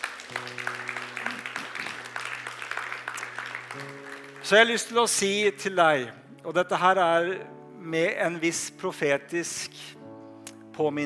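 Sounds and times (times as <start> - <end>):
audience applause: 0.0 - 5.2
speech: 3.8 - 10.0, 10.8 - 11.0.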